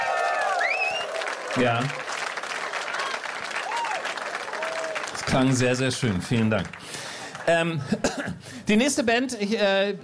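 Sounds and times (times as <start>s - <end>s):
evening audience applause: 0.0s - 7.8s
speech: 1.5s - 2.0s, 5.3s - 6.8s, 7.5s - 10.0s.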